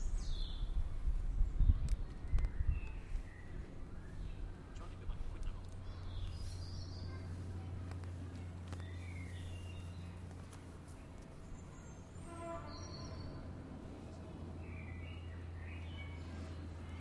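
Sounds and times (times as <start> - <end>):
spring soundscape in a garden in the afternoon: 0.0 - 16.9.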